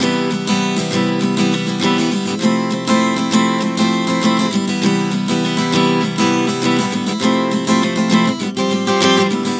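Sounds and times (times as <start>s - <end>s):
acoustic guitar chord progressions Cmaj7 to Fmaj7: 0.0s - 9.5s.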